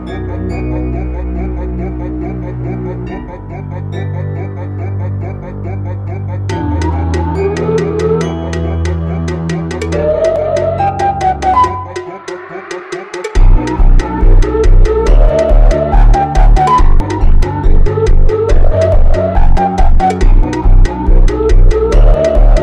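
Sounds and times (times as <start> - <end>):
funk music: 6.5 - 22.6.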